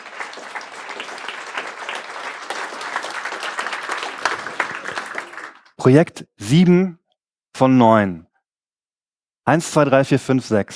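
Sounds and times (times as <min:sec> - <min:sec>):
audience applause: 0:00.0 - 0:05.8
speech: 0:05.8 - 0:07.0, 0:07.6 - 0:08.3, 0:09.5 - 0:10.7.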